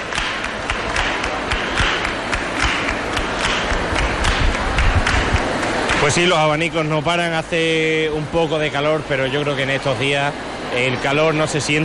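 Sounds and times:
youth group rhythmic hand clapping: 0.0s - 6.3s
speech: 6.0s - 11.8s.

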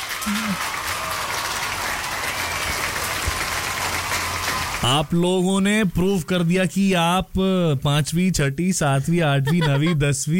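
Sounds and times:
applause: 0.0s - 5.4s
speech: 4.8s - 10.3s
laughter: 8.9s - 10.3s.

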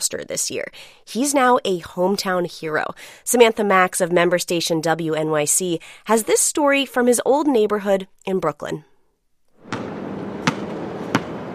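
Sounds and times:
speech: 0.1s - 8.9s
basketball bouncing on an outdoor court across from the Berry Street houses in Brooklyn: 9.6s - 11.5s.

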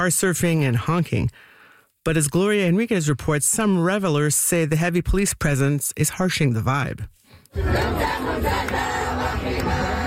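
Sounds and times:
speech: 0.0s - 9.8s
group of fans singing a national anthem in a parking lot: 7.5s - 10.0s.

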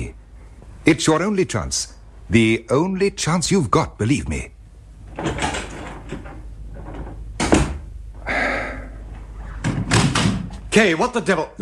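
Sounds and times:
speech: 0.8s - 4.6s, 10.8s - 11.6s
door being shut: 5.1s - 7.9s, 9.5s - 10.6s.

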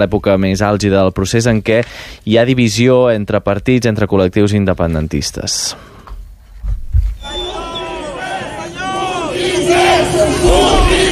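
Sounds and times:
speech: 0.0s - 5.9s
low thumps: 6.2s - 7.2s
crowd shouting angry insults at politicians in chants: 7.2s - 11.0s.

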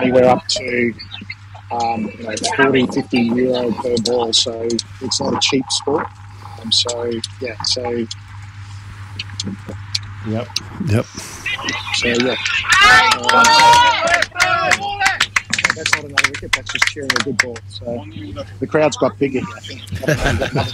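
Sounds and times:
laughter: 0.0s - 5.6s, 19.5s - 20.7s
crowd chatter and calls: 0.0s - 8.2s, 9.2s - 20.7s
speech: 0.1s - 8.3s, 9.4s - 20.7s
cricket crowd cheering a good ball: 11.4s - 17.5s, 19.9s - 20.7s.

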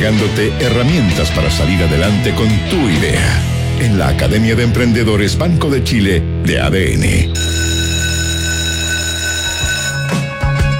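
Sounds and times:
speech: 0.0s - 7.6s
school bell ringing: 7.3s - 10.6s.

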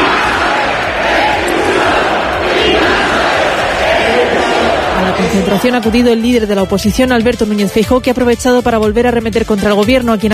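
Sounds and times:
protest crowd shouting slogans: 0.0s - 6.0s
speech: 5.4s - 10.3s.

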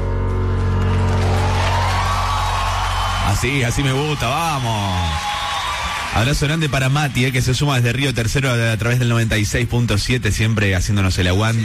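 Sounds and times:
musical drone: 0.0s - 4.2s
crowd applauding and cheering: 0.0s - 9.2s
speech: 3.4s - 5.3s, 6.1s - 11.6s.

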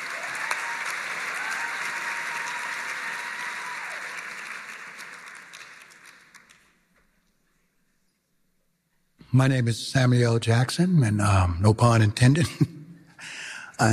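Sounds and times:
audience applause: 0.0s - 6.8s
speech: 9.3s - 12.8s, 13.8s - 13.9s.

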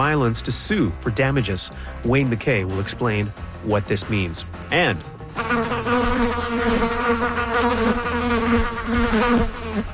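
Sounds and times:
speech: 0.0s - 5.7s
black flies swarming in spring: 5.3s - 9.9s.

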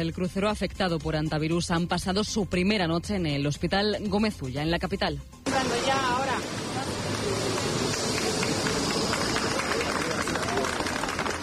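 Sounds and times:
speech: 0.0s - 6.5s
crowd voices and hubbub: 5.5s - 11.4s
group of people applauding at hospital arrival: 6.9s - 11.4s.

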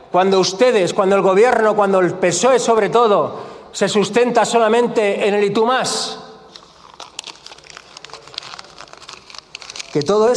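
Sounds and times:
speech: 0.1s - 6.2s, 10.0s - 10.3s
sheet of paper crumpled in the hand: 6.5s - 10.2s.

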